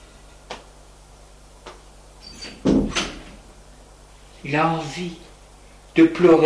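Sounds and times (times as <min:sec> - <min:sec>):
low hum: 0:00.0 - 0:06.4
apartment door opening and closing: 0:02.6 - 0:03.2
speech: 0:04.4 - 0:05.3, 0:06.0 - 0:06.4.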